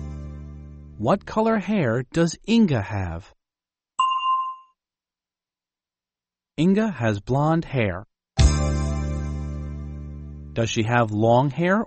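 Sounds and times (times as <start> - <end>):
speech: 1.0 - 3.4, 6.6 - 8.7, 10.6 - 11.8
bell ding: 4.0 - 4.8.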